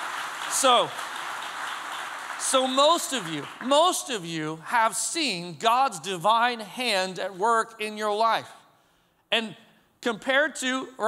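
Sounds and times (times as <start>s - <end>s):
audience applauding: 0.0s - 4.2s
speech: 0.5s - 1.1s, 2.4s - 8.6s, 9.3s - 11.0s.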